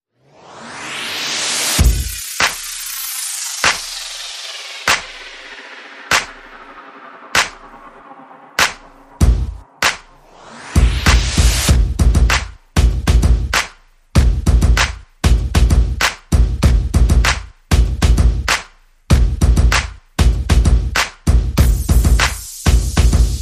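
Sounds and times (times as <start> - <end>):
sound effects: 0.2 - 11.8
percussion: 1.3 - 23.3.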